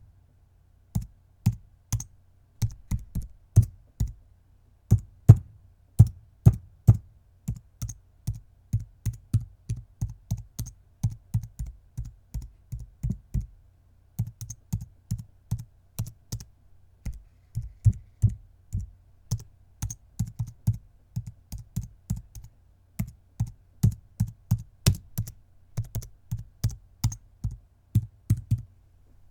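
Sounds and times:
small keyboard clicks: 1.0 - 4.2, 6.9 - 13.5, 14.2 - 28.7.

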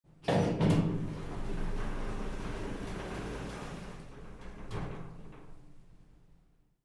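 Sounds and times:
elevator door opening heard from outside: 0.4 - 5.9.

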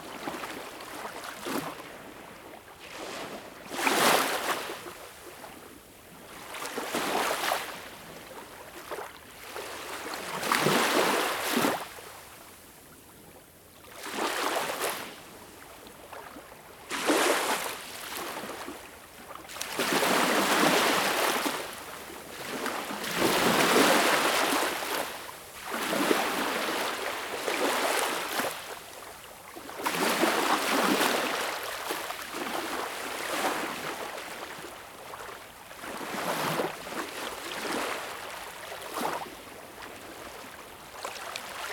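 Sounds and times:
waves at Baltic Sea shore: 0.0 - 5.6, 6.2 - 12.7, 13.8 - 41.7.

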